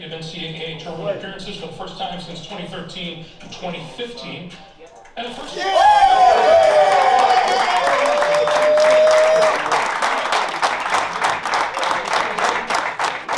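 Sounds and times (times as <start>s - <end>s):
speech: 0.0s - 6.6s
group cheering and clapping: 5.3s - 13.3s.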